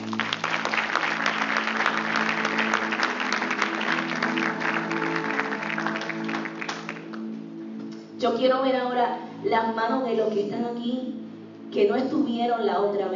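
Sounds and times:
audience applause: 0.0 - 7.2
speech: 8.2 - 13.1.

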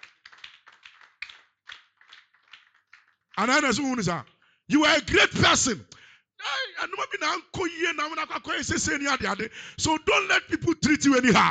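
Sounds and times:
group clapping in rhythm: 0.0 - 4.7
speech: 3.4 - 5.9, 6.8 - 11.4.

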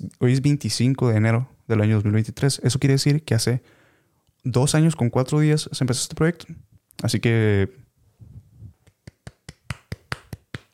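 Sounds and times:
speech: 0.2 - 3.8, 4.4 - 7.8
single person clapping: 8.8 - 10.7.

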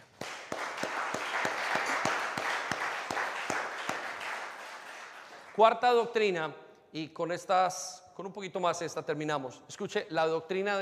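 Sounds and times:
audience applause: 0.0 - 5.6
speech: 5.6 - 10.8.

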